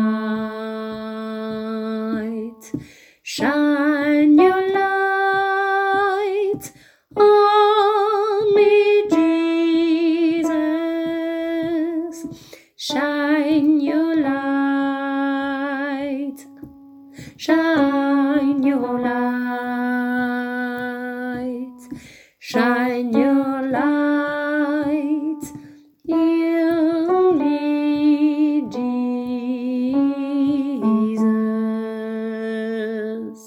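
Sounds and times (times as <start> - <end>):
alto voice singing a refrain: 0.0 - 33.4.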